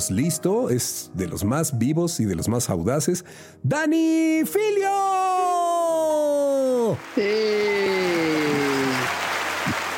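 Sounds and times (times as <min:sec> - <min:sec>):
speech: 0:00.0 - 0:05.5, 0:06.9 - 0:08.6
audience applause: 0:06.3 - 0:09.9.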